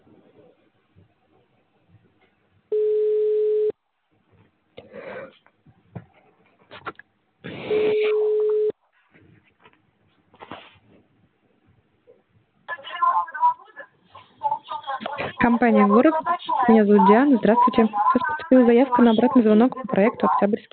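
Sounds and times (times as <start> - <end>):
telephone ringback tones calling a subscriber: 2.7 - 3.7, 7.7 - 8.7
speech: 15.5 - 20.7.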